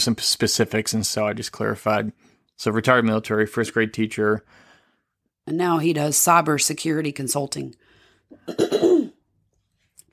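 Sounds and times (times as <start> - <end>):
speech: 0.0 - 4.6, 5.5 - 8.9
person clearing throat with a cough: 8.4 - 9.2.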